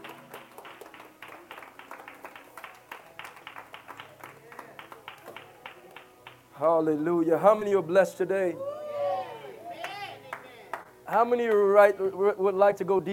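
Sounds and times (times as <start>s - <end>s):
audience hand clapping: 0.0s - 6.5s, 9.8s - 10.9s
speech: 6.6s - 8.7s, 11.1s - 13.1s.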